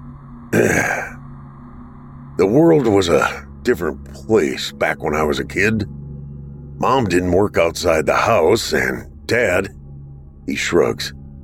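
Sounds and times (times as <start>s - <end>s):
man clearing his throat: 0.6s - 1.2s
speech: 2.4s - 6.0s, 6.8s - 9.8s, 10.4s - 11.2s.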